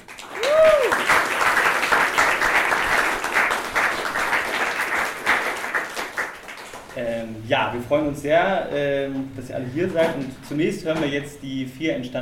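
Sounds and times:
audience applause: 0.0s - 6.9s
speech: 7.5s - 12.2s.

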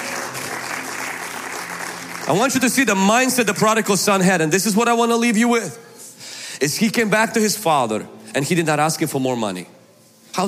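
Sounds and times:
audience round of applause: 0.0s - 3.0s
speech: 2.3s - 5.9s, 6.6s - 9.8s.

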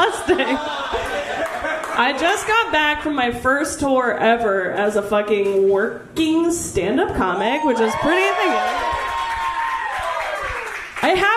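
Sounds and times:
laughter: 0.0s - 2.3s
loud audience clapping: 0.5s - 2.7s, 8.1s - 11.3s
speech: 2.0s - 9.0s, 11.0s - 11.3s.

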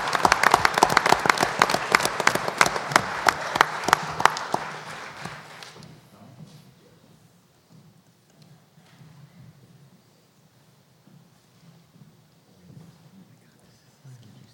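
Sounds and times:
applause: 0.0s - 6.0s.

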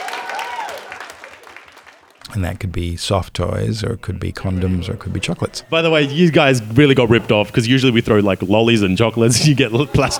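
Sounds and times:
audience applause: 0.0s - 10.1s
laughter: 2.3s - 10.1s
speech: 2.4s - 10.1s.

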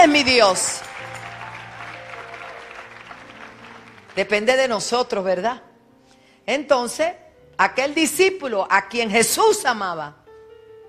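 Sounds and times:
speech: 0.0s - 1.0s, 4.2s - 5.7s, 6.4s - 10.2s
congregation applause at a worship service: 0.0s - 4.6s.

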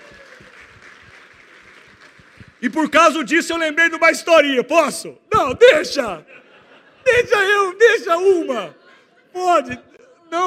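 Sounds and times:
round of applause: 0.0s - 3.1s
speech: 2.6s - 6.4s, 7.0s - 10.4s
laughter: 5.9s - 10.4s.

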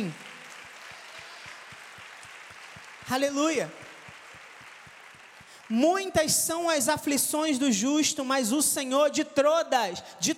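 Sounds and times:
audience applause: 0.0s - 7.6s
speech: 3.1s - 3.8s, 5.7s - 10.3s.

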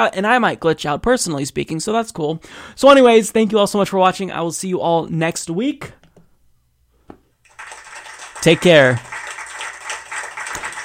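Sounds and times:
speech: 0.0s - 6.0s, 8.4s - 9.1s
applause: 7.5s - 10.8s.

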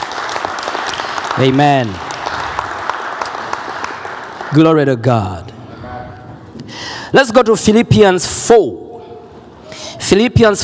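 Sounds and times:
audience clapping hands: 0.0s - 5.1s
speech: 1.4s - 2.1s, 4.5s - 5.6s, 7.1s - 8.8s, 10.0s - 10.6s.

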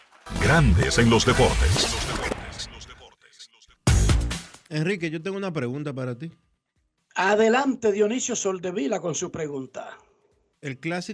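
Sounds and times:
audience applause: 0.0s - 1.1s
speech: 0.5s - 2.1s, 4.7s - 6.4s, 7.2s - 10.0s, 10.6s - 11.1s.

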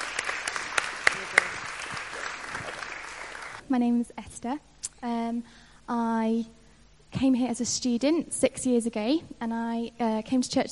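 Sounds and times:
group clapping in a round of applause: 0.0s - 3.6s
speech: 3.7s - 10.7s.

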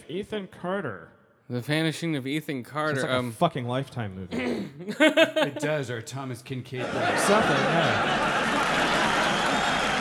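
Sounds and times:
speech: 0.1s - 9.6s
laughter: 4.8s - 5.9s, 6.8s - 9.9s
crowd noise: 6.9s - 9.9s.

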